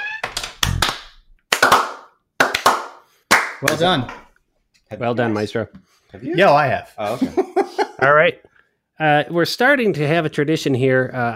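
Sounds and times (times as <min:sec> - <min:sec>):
slow hand claps: 0:00.2 - 0:04.2
speech: 0:03.6 - 0:04.2, 0:04.9 - 0:11.3
laughter: 0:07.0 - 0:08.1.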